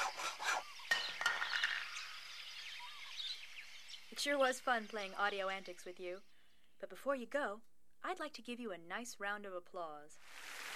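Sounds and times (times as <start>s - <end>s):
saw imitating a jungle bird: 0.0s - 1.2s
speech: 4.2s - 10.6s.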